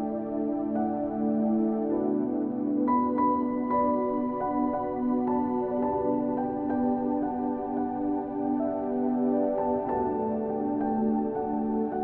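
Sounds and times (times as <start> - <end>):
instrumental piano worship music: 0.0 - 12.0.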